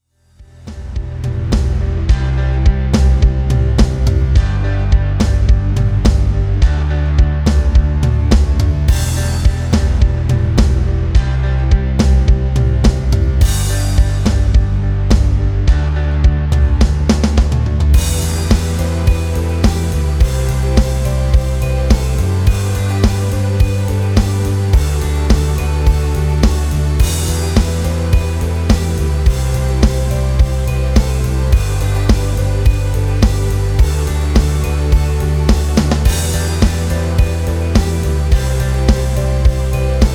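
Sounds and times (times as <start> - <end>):
rhythm: 0.7 - 40.1.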